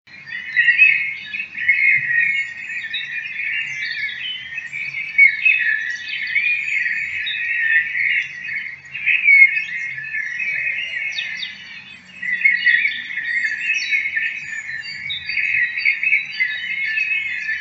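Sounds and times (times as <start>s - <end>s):
bird chattering with high scratchy twittering notes: 0.1s - 17.5s.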